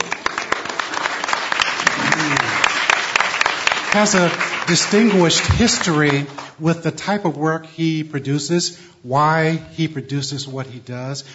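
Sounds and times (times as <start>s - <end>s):
audience applause: 0.0s - 6.5s
faint voice murmuring: 1.9s - 2.7s
speech: 3.9s - 11.3s.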